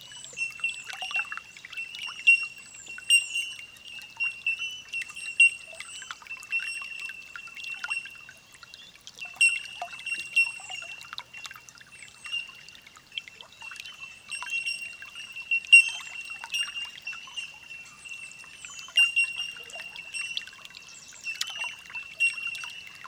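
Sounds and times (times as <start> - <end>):
bell birds calling: 0.0 - 12.7, 13.3 - 23.0.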